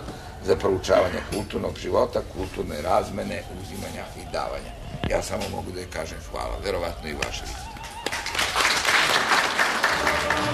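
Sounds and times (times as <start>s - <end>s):
speech: 0.4s - 7.7s
audience applause at a 1988 presentation of the book Da Capo al Infinito: 7.8s - 10.5s.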